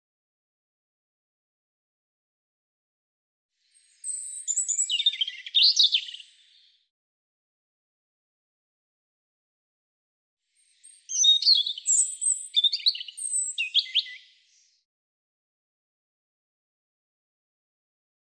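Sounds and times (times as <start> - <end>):
European robin singing high phrases of slurred whistles and trills: 3.6 - 6.8, 10.6 - 14.8.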